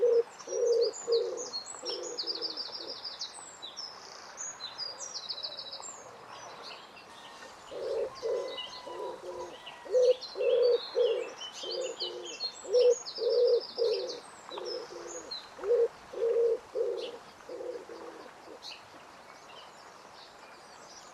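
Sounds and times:
bird giving low hollow cooing notes: 0:00.0 - 0:03.0, 0:07.7 - 0:18.6.

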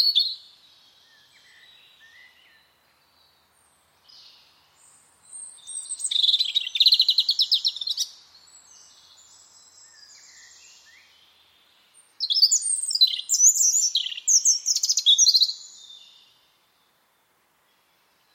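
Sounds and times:
bird singing twittering phrases with whistles and trills: 0:00.0 - 0:17.0.

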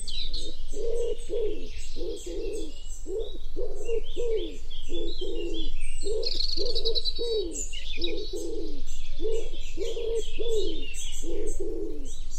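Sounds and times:
Common wood pigeon cooing: 0:00.2 - 0:12.3.

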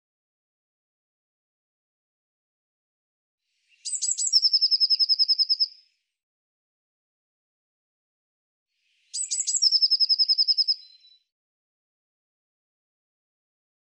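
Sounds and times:
bird song: 0:03.5 - 0:06.2, 0:08.7 - 0:11.4.

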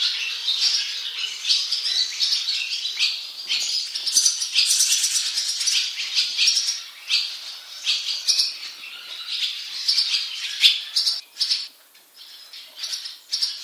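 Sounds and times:
bird calling with short high chirping notes: 0:00.0 - 0:13.6.

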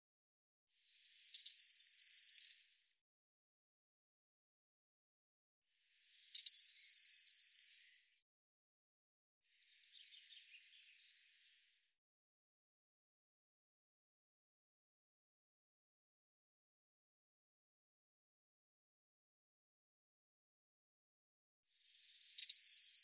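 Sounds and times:
bird song trills: 0:01.0 - 0:02.6, 0:05.9 - 0:08.1, 0:09.6 - 0:11.9, 0:21.9 - 0:23.0.

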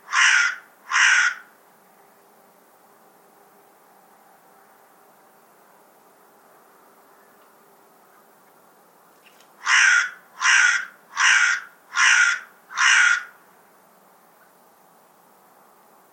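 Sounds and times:
harsh rasping bird call: 0:00.0 - 0:01.5, 0:09.6 - 0:13.4.

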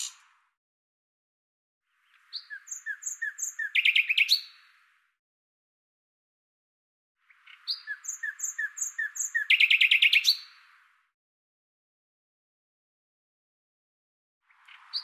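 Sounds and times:
common nightingale song: 0:00.0 - 0:00.3, 0:01.9 - 0:04.8, 0:07.2 - 0:10.8, 0:14.5 - 0:15.0.

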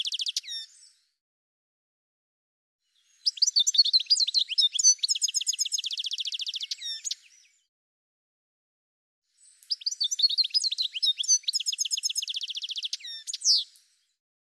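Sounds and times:
bird chirping: 0:00.0 - 0:01.1, 0:02.9 - 0:07.7, 0:09.4 - 0:14.2.

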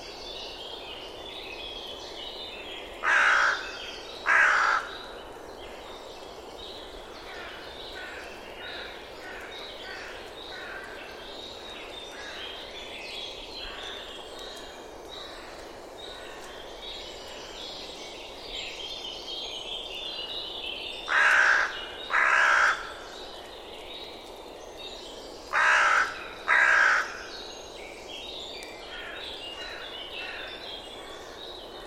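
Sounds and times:
bird giving harsh cawing calls: 0:03.0 - 0:03.7, 0:04.3 - 0:04.9, 0:21.1 - 0:23.0, 0:25.5 - 0:27.3.

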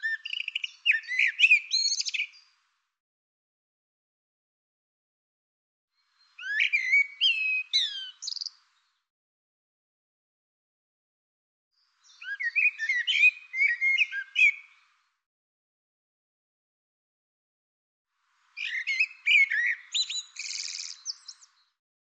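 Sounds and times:
bird singing bright phrases of varied whistles and chirps: 0:00.0 - 0:02.5, 0:06.0 - 0:09.0, 0:12.0 - 0:14.9, 0:18.5 - 0:21.8.

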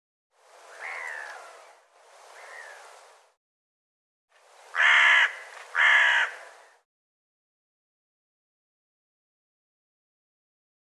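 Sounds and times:
crow-like bird cawing: 0:00.7 - 0:01.6, 0:02.4 - 0:02.8, 0:04.7 - 0:06.8.

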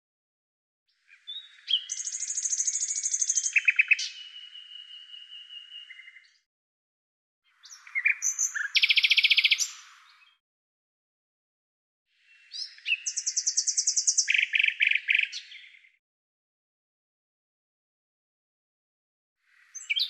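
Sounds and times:
bird singing sharp chirps buzzy trills and rapid repeated notes: 0:01.3 - 0:06.4, 0:07.5 - 0:10.4, 0:12.4 - 0:15.9.

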